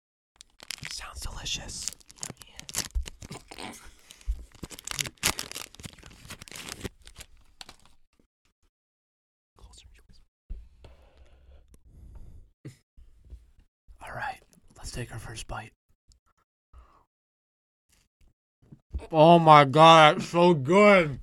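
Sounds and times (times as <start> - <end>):
Kind Breakfast Cereal Bar wrapper being torn open: 0.4 - 8.0
speech: 1.1 - 2.0, 15.0 - 15.8, 19.1 - 21.2.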